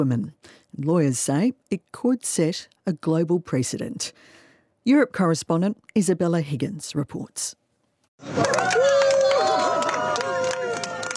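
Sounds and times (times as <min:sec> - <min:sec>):
speech: 0:00.0 - 0:07.6, 0:08.2 - 0:09.0
crowd celebrating and applauding outside court: 0:08.2 - 0:11.1
high sustained whoops: 0:08.3 - 0:11.1.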